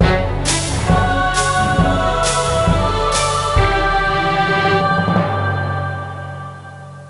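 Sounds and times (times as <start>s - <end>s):
pirate-themed triumphant music: 0.0s - 7.0s.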